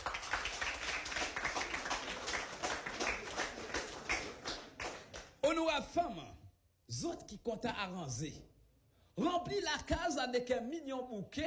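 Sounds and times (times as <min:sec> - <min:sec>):
crowd applauding: 0:00.0 - 0:05.4
speech: 0:05.5 - 0:08.5, 0:09.2 - 0:11.4.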